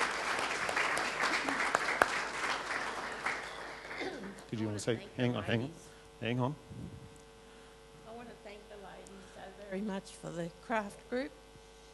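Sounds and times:
audience clapping: 0:00.0 - 0:04.8
speech: 0:04.5 - 0:07.0, 0:09.7 - 0:11.4.

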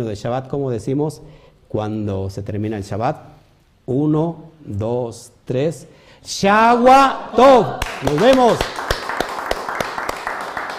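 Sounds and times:
speech: 0:00.0 - 0:08.8
audience clapping: 0:07.7 - 0:10.7.

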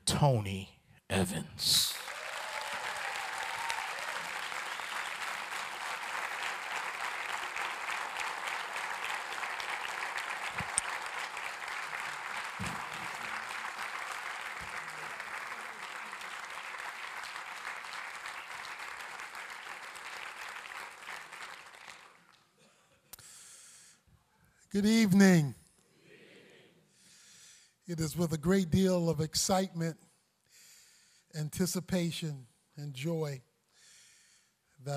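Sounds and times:
speech: 0:00.2 - 0:01.9, 0:24.8 - 0:25.5, 0:28.2 - 0:30.0, 0:31.5 - 0:33.5
church audience applauding at Strong Tower Bible Church welcoming a guest preacher: 0:01.9 - 0:22.5.

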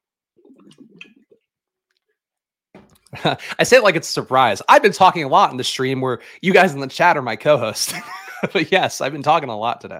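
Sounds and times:
person swallowing: 0:00.4 - 0:01.5
slurping sip of water: 0:00.4 - 0:01.5
speech: 0:03.2 - 0:09.9.

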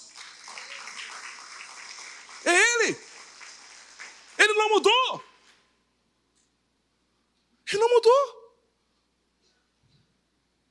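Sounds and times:
audience applause: 0:00.0 - 0:04.9
speech: 0:02.4 - 0:03.1, 0:04.6 - 0:05.3.

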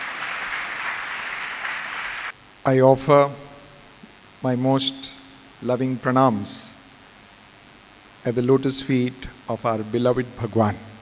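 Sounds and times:
audience applause welcoming a speaker at a Sathya Sai youth gathering: 0:00.0 - 0:02.3
speech: 0:02.6 - 0:03.5, 0:04.4 - 0:06.8, 0:08.2 - 0:10.9.

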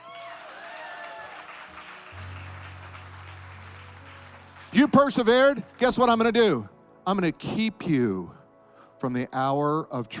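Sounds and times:
audience clapping: 0:00.0 - 0:06.4
speech: 0:04.7 - 0:08.4, 0:09.0 - 0:10.1.

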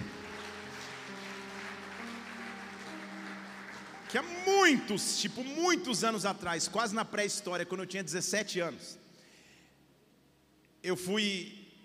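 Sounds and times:
audience applause: 0:00.0 - 0:05.3
speech: 0:04.1 - 0:09.0, 0:10.8 - 0:11.6.

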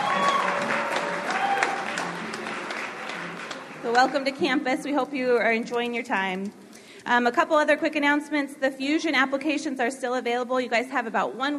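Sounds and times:
audience in a chapel applauding visiting guests: 0:00.0 - 0:04.6
speech: 0:04.0 - 0:11.5.

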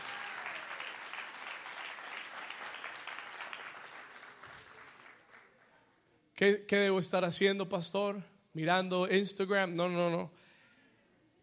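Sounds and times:
audience applause: 0:00.0 - 0:05.6
speech: 0:06.4 - 0:10.4.

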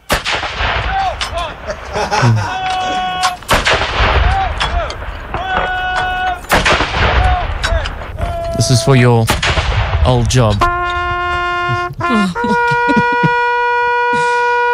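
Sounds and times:
21-gun salute sound effect blasts: 0:00.0 - 0:01.2, 0:03.5 - 0:08.2, 0:09.3 - 0:11.3
laughter: 0:01.3 - 0:03.3, 0:11.5 - 0:14.6
speech: 0:02.0 - 0:02.6, 0:08.7 - 0:10.7, 0:12.1 - 0:12.6.

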